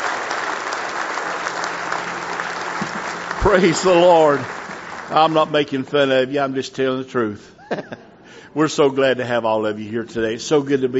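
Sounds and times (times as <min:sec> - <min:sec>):
audience hand clapping: 0:00.0 - 0:05.9
speech: 0:03.4 - 0:10.9.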